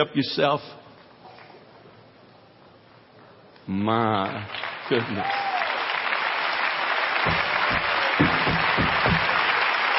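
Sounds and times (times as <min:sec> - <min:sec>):
speech: 0:00.0 - 0:00.8, 0:03.7 - 0:05.4, 0:07.2 - 0:08.4
audience applause: 0:04.4 - 0:09.9.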